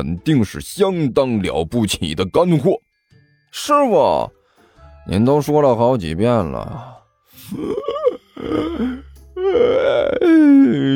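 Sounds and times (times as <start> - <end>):
speech: 0.0 - 2.8, 3.5 - 4.4, 5.0 - 10.9
person yawning: 7.4 - 10.9.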